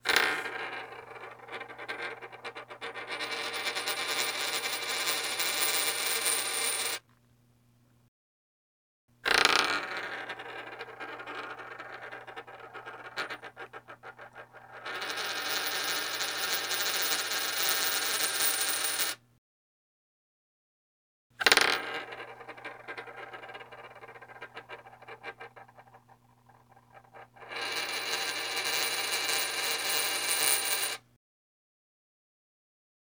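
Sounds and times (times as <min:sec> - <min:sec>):
coin: 0:00.1 - 0:07.0, 0:09.3 - 0:19.2, 0:21.4 - 0:31.0.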